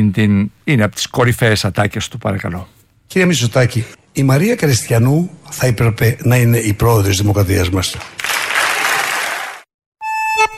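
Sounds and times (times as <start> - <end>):
speech: 0.0 - 8.2
audience applause on a Greek TV programme: 8.2 - 9.7.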